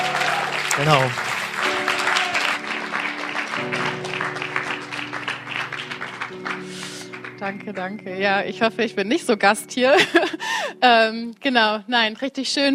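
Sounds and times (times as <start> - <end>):
audience applause: 0.0 - 7.8
speech: 0.8 - 1.2, 7.4 - 12.7
laughter: 9.9 - 10.6.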